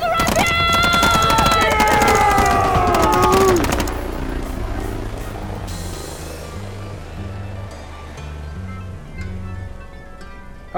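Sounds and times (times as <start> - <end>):
automatic and rifle gunfire: 0.0 - 4.3
droning whining engine-like tone: 0.0 - 10.7.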